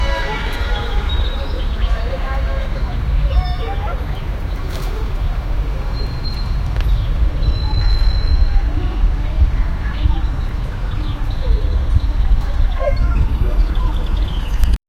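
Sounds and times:
Dubai park background noise: 0.0 - 14.8.

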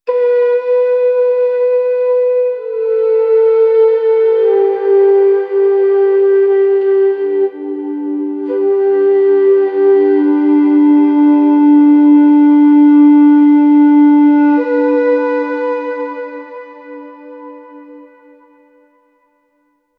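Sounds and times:
calm meditative instrumental music: 0.1 - 19.6.

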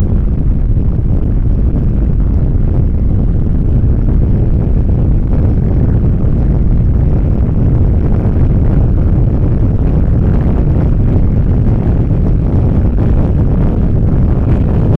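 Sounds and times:
rustling in the summer wind: 0.0 - 14.9.

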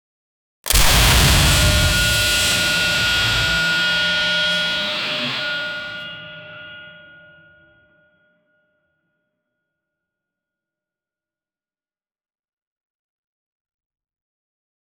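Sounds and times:
heavy electrical arcing from machinery: 0.7 - 6.0.

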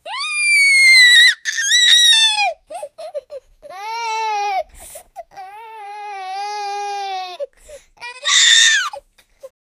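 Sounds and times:
child crying loudly: 0.1 - 2.6, 8.2 - 9.0.

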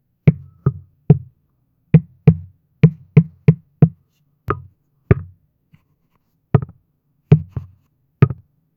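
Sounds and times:
rubber block: 2.0 - 5.4, 6.6 - 8.5.

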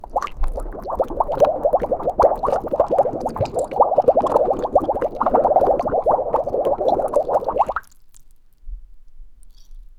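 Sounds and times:
bubbles: 0.0 - 7.9
swimming: 0.0 - 7.9.

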